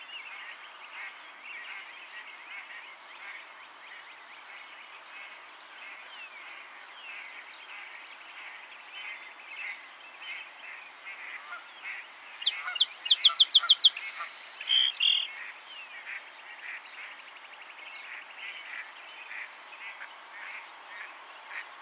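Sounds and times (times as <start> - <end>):
song sparrow Melospiza melodia singing: 12.4 - 15.3.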